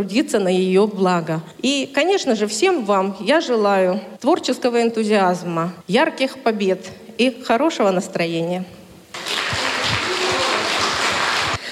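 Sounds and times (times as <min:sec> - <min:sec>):
speech: 0:00.0 - 0:08.8
audience applause: 0:09.1 - 0:11.7.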